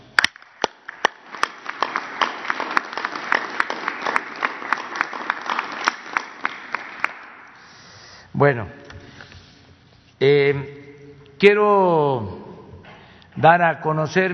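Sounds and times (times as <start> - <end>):
audience applause: 0.0 - 7.6
speech: 8.4 - 8.8, 10.2 - 10.8, 11.4 - 12.4, 13.4 - 14.3.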